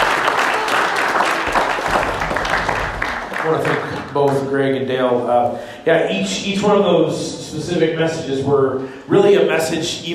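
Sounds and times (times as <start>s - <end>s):
crowd applauding: 0.0s - 4.5s
speech: 3.5s - 10.1s.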